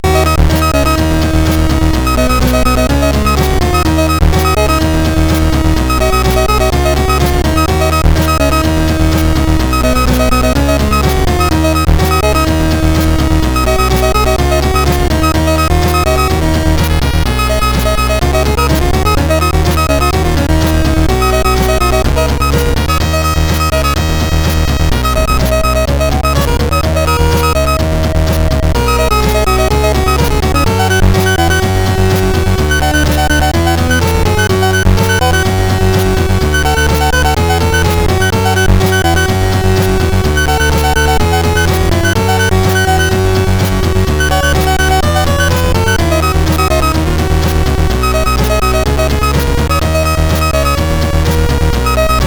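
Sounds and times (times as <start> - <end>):
SID CSG8580R5 chip music: 0.0 - 52.2.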